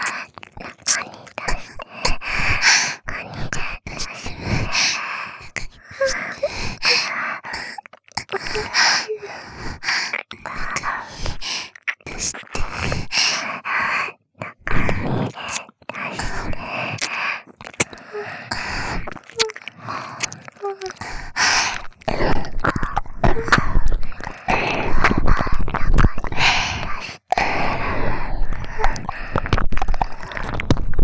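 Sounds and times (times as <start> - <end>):
ear licking: 0.0 - 31.0
person moaning: 8.4 - 9.4.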